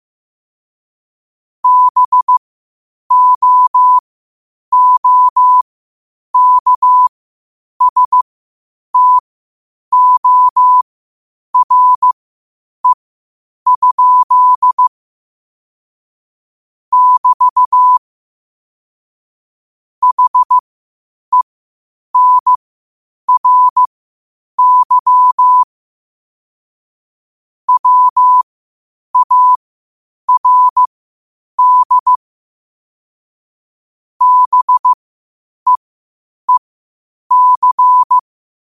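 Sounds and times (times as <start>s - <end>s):
morse code at 5 wpm: 1.6s - 2.4s, 3.1s - 4.0s, 4.7s - 5.6s, 6.4s - 7.1s, 7.8s - 8.2s, 9.0s - 9.2s, 9.9s - 10.8s, 11.6s - 12.2s, 13.7s - 14.9s, 16.9s - 18.0s, 20.0s - 20.6s, 22.2s - 22.6s, 23.3s - 23.9s, 24.6s - 25.7s, 27.7s - 28.4s, 29.2s - 29.6s, 30.3s - 30.9s, 31.6s - 32.2s, 34.2s - 35.0s, 37.3s - 38.2s.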